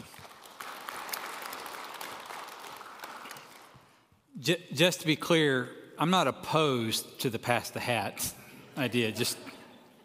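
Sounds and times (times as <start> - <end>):
round of applause: 0.0 - 4.1
speech: 4.4 - 9.6.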